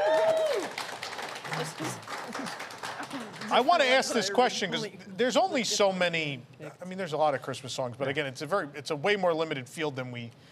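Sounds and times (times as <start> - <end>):
people applauding: 0.0 - 4.4
speech: 1.6 - 2.5, 3.5 - 10.5.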